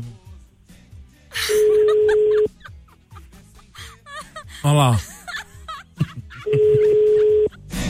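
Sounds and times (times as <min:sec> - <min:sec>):
laughter: 0:01.4 - 0:07.6
speech: 0:04.6 - 0:05.1
telephone ringing tone: 0:06.6 - 0:07.5.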